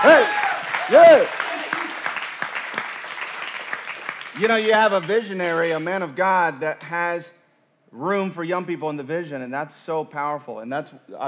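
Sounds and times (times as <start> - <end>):
speech: 0.0 - 1.4, 4.4 - 11.2
audience clapping: 0.0 - 5.8.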